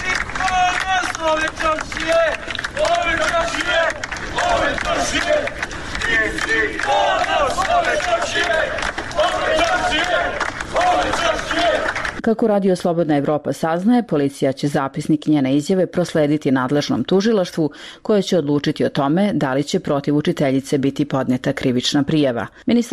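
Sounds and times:
townspeople cheering and shouting: 0.0 - 12.1
scattered clapping: 0.0 - 12.2
speech: 1.2 - 2.4, 9.5 - 22.9.

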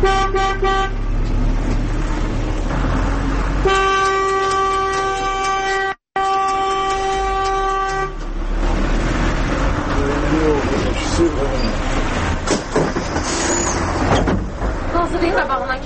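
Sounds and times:
car horns honking in traffic: 0.0 - 1.1, 3.6 - 8.4
traffic engines and road noise: 0.0 - 15.8.

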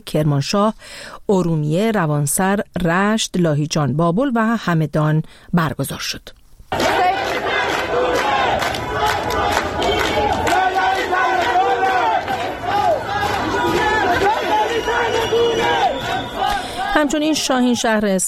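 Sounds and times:
speech: 0.0 - 7.0, 17.0 - 18.2
protest crowd chanting and shouting: 6.7 - 18.2.

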